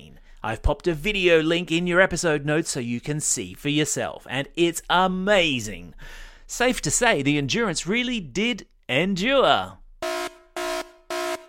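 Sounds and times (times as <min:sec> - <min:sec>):
speech: 0:00.4 - 0:09.8
dad joke alarm horn: 0:10.0 - 0:11.4.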